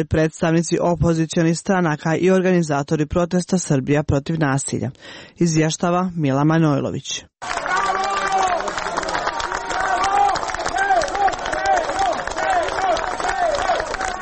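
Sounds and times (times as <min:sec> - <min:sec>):
speech: 0:00.0 - 0:07.6
crowd applauding outside the special court building in Belgrade: 0:07.4 - 0:14.1.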